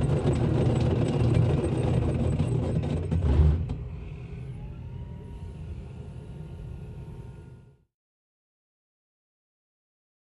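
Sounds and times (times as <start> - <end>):
container rolling on floor: 0.0 - 3.6.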